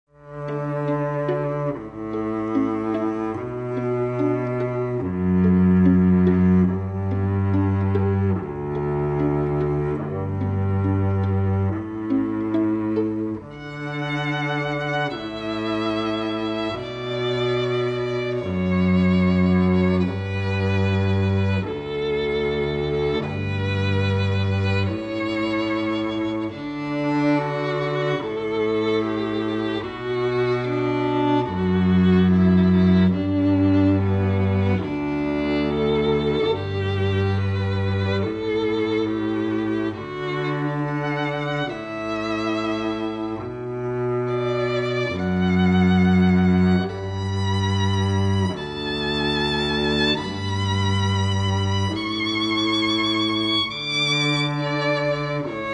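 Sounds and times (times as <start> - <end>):
string duo: 0.0 - 55.7.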